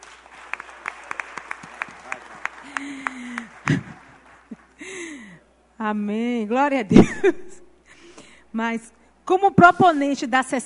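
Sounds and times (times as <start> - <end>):
round of applause: 0.0 - 5.1
speech: 5.8 - 7.6, 8.6 - 10.6.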